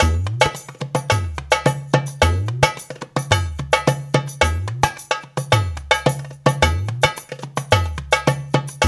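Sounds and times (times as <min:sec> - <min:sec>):
darbuka playing: 0:00.0 - 0:08.8.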